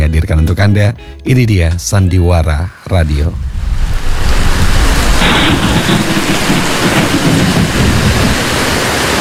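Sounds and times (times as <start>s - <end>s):
speech: 0.4s - 4.0s, 5.3s - 8.6s
heavy rain: 3.3s - 9.1s
rolling thunder: 3.3s - 9.1s.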